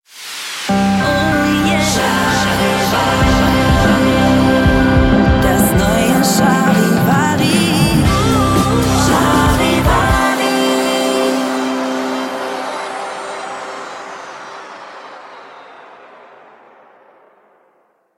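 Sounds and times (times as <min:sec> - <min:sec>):
relaxed pop rock music: 0:00.7 - 0:13.8.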